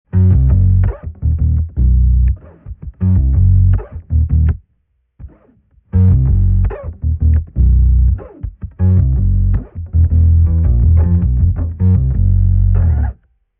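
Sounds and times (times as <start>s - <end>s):
bass with sub octaver: 0.1s - 4.6s, 5.9s - 13.3s.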